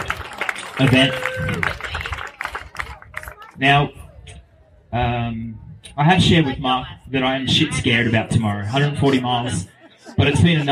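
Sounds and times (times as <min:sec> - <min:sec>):
audience applause: 0:00.0 - 0:03.6
speech: 0:00.8 - 0:01.9, 0:03.6 - 0:04.0, 0:04.9 - 0:10.6
laughter: 0:07.7 - 0:10.6.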